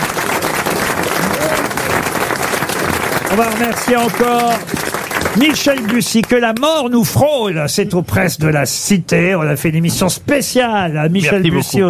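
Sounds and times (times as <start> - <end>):
audience applause: 0.0 - 6.8
speech: 3.3 - 11.8.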